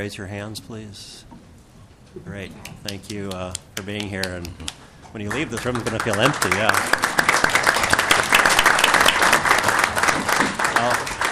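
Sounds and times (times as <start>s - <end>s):
speech: 0.0s - 1.4s, 2.1s - 7.2s
audience applause: 5.2s - 11.3s.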